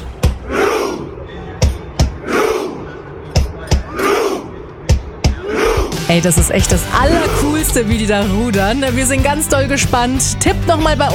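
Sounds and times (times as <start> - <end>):
large crowd of football fans chanting: 0.3 - 6.1
speech: 6.1 - 11.1.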